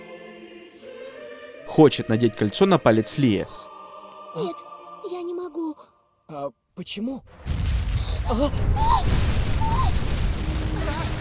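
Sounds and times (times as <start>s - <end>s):
speech: 1.7s - 3.7s, 4.4s - 7.5s, 8.3s - 9.3s
tree crashing down in a film scene: 7.3s - 11.1s.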